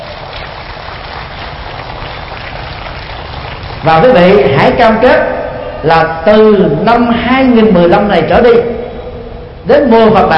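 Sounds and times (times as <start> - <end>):
audience applause: 0.0 - 3.9
speech: 3.8 - 8.8, 9.6 - 10.3.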